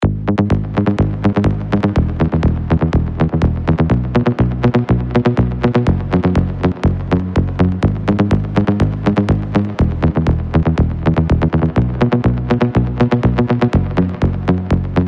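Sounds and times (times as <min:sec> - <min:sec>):
psytrance bassline: 0:00.0 - 0:15.0.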